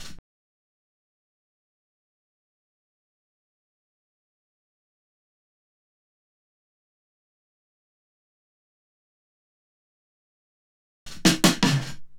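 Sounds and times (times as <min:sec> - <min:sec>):
drum roll and fills: 0:11.1 - 0:12.1.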